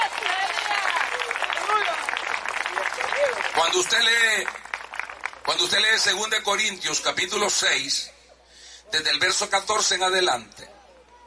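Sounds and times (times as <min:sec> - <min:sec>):
audience applause: 0:00.0 - 0:06.3
voices calling out and cheering: 0:00.0 - 0:11.2
speech: 0:03.7 - 0:04.6, 0:05.5 - 0:08.2, 0:08.9 - 0:10.7.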